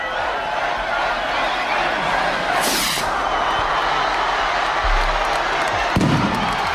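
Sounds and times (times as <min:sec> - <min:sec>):
festival crowd cheering and roaring: 0:00.0 - 0:06.7
festival rockets exploding: 0:06.0 - 0:06.7.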